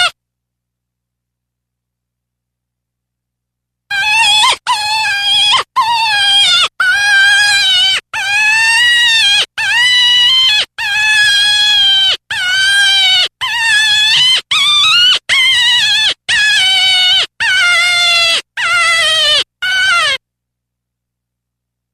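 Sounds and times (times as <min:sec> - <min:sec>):
deer fawn distress call: 0:03.9 - 0:20.2.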